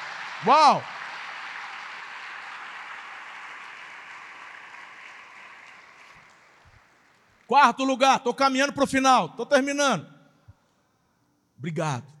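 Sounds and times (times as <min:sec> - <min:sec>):
audience applause: 0:00.0 - 0:07.4
speech: 0:00.4 - 0:00.9, 0:07.5 - 0:10.1, 0:11.6 - 0:12.1.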